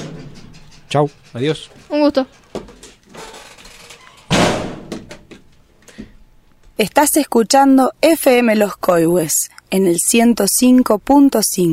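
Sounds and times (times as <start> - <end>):
door closing shut: 0.0 - 1.0, 2.5 - 5.4
speech: 0.9 - 2.7, 6.8 - 11.7.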